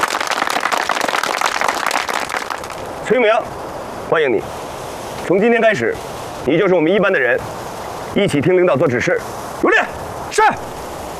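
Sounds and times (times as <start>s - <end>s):
applause: 0.0s - 2.9s
speech: 3.1s - 4.6s, 5.3s - 7.6s, 8.2s - 10.7s.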